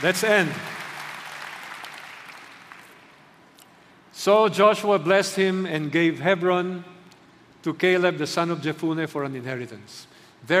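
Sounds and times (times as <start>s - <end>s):
speech: 0.0s - 0.8s, 4.2s - 7.0s, 7.6s - 10.5s
audience clapping: 0.0s - 3.4s.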